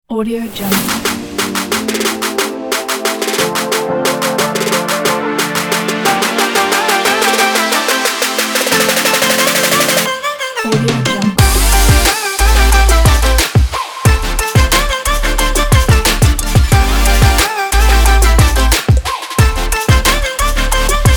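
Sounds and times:
uplifting future bass music: 0:00.7 - 0:21.1.

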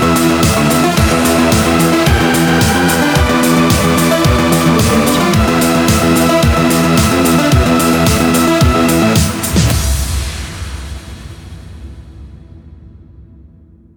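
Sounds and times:
cyberpunk electro music: 0:00.0 - 0:10.8.

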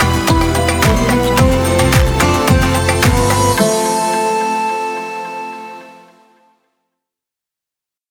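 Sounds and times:
modern Arabic music: 0:00.0 - 0:06.4.

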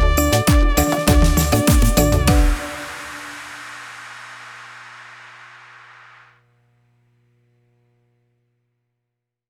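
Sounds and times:
Caribbean style music: 0:00.0 - 0:03.9.

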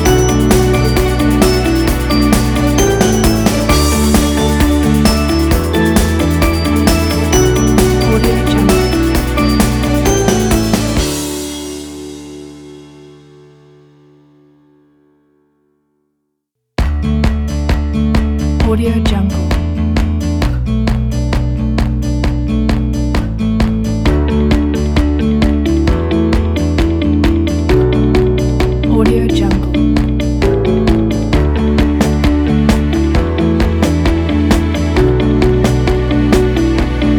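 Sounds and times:
motivational upbeat indie folk music: 0:00.0 - 0:12.6, 0:16.8 - 0:37.1.

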